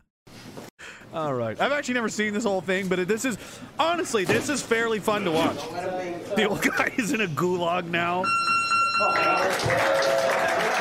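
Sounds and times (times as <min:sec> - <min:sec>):
speech: 0:01.1 - 0:10.5
audience clapping: 0:09.0 - 0:10.7.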